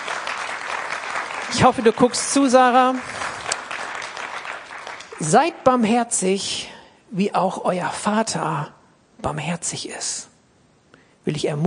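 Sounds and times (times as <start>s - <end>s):
audience applauding: 0.0s - 5.5s
speech: 1.5s - 3.3s, 5.2s - 10.3s, 11.2s - 11.6s.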